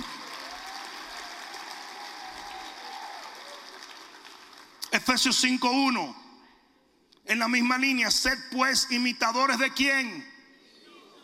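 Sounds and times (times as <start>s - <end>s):
audience applauding: 0.0s - 4.9s
speech: 5.0s - 6.2s, 7.3s - 10.3s.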